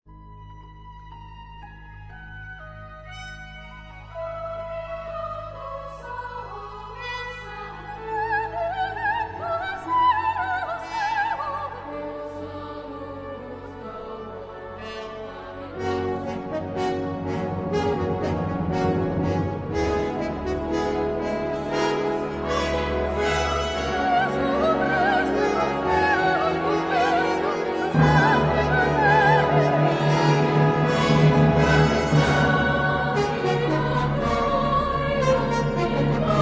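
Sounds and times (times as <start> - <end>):
choral mass in F-sharp major: 4.1 - 36.4.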